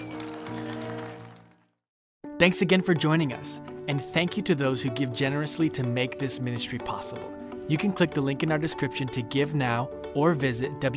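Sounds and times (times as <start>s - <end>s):
audience clapping hands: 0.0s - 1.8s
speech: 2.4s - 10.9s.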